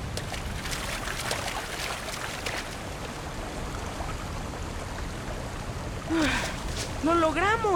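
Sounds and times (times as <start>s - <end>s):
splashing water of someone swimming: 0.1s - 7.7s
speech: 7.1s - 7.7s.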